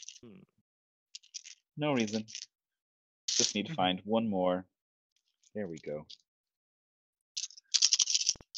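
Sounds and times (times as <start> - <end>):
speech: 0.2 - 0.6, 1.8 - 2.5, 3.4 - 4.7, 5.5 - 6.2
dice clicking and clacking in a bag: 1.2 - 2.5, 3.3 - 3.6, 7.4 - 8.5.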